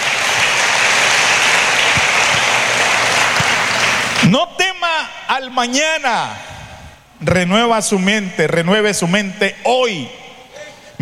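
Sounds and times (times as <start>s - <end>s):
audience applause: 0.0s - 4.3s
speech: 5.4s - 6.5s, 7.2s - 10.2s.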